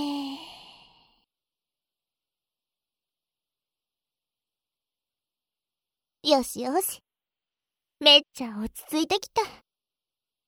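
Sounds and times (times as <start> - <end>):
long soft exhale during a guided breathing exercise: 0.0 - 1.2
speech: 6.2 - 7.0, 8.0 - 9.7.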